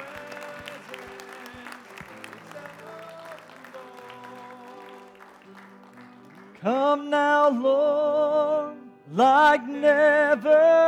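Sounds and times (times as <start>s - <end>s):
audience applause: 0.0s - 6.8s
speech: 6.6s - 10.8s.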